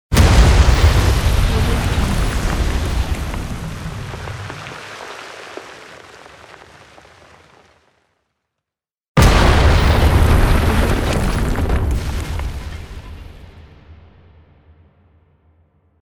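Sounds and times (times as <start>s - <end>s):
explosion: 0.1s - 6.6s, 9.2s - 15.5s.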